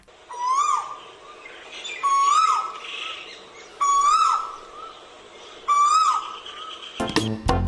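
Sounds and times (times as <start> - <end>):
Asian koel call: 0.0 - 7.5.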